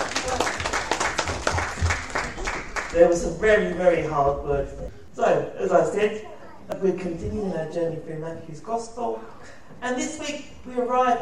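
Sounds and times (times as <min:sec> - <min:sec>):
church congregation clapping after a Bible reading: 0:00.0 - 0:03.2
speech: 0:03.0 - 0:11.2.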